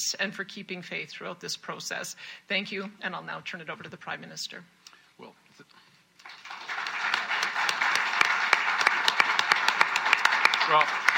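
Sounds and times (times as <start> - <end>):
speech: 0.0 - 6.4, 10.7 - 11.0
hand clapping: 6.2 - 11.1.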